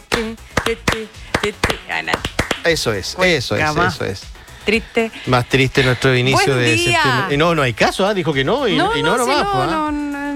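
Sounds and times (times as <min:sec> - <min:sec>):
hand clapping: 0:00.0 - 0:02.8
speech: 0:00.2 - 0:10.0.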